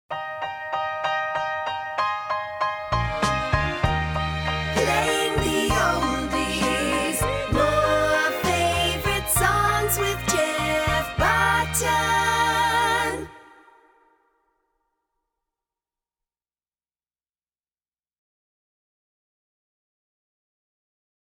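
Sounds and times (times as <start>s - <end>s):
song: 0.1s - 14.1s.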